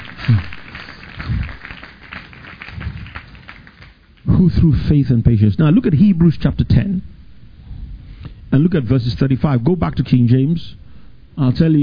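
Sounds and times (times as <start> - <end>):
audience clapping: 0.0 - 4.3
speech: 0.3 - 0.5, 4.4 - 7.2, 8.5 - 10.8, 11.4 - 11.8.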